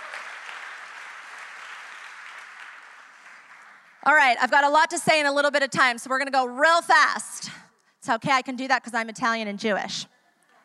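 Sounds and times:
audience clapping: 0:00.0 - 0:04.0
speech: 0:04.0 - 0:10.1.

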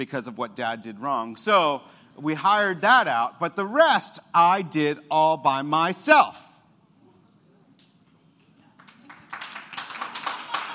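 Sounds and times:
speech: 0:00.0 - 0:06.5
audience clapping: 0:08.7 - 0:10.7.

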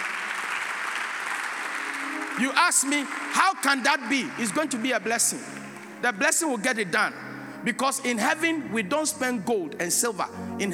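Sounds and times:
audience clapping hands: 0:00.0 - 0:06.0
speech: 0:02.4 - 0:10.7.

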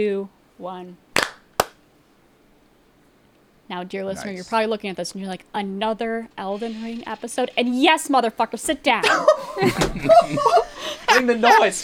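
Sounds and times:
speech: 0:00.0 - 0:01.1, 0:03.7 - 0:11.8
hand clap for audio sync: 0:01.2 - 0:01.8
laughter: 0:09.0 - 0:11.8.

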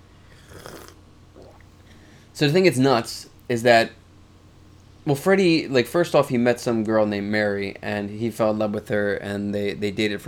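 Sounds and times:
sipping tea: 0:00.3 - 0:01.7
speech: 0:02.4 - 0:04.0, 0:05.0 - 0:10.2.

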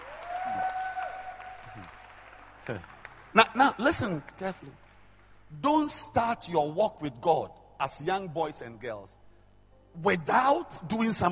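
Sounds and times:
audience clapping hands: 0:00.0 - 0:05.1
speech: 0:02.7 - 0:04.8, 0:05.5 - 0:09.2, 0:10.0 - 0:11.2.

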